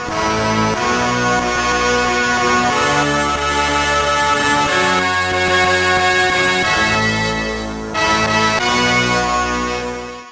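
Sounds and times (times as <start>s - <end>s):
soul fanfare: 0.1s - 10.1s.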